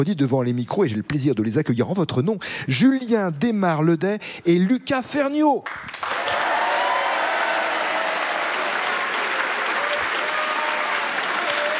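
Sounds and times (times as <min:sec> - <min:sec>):
speech: 0:00.0 - 0:06.2
studio audience applauding radio show guests: 0:05.7 - 0:11.7
crowd noise: 0:06.2 - 0:11.7.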